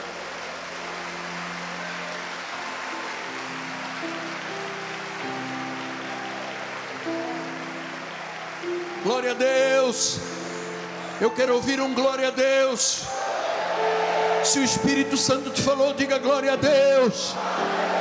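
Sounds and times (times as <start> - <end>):
audience applause: 0.0 - 18.0
speech: 9.0 - 10.4, 11.2 - 13.2, 13.8 - 17.8.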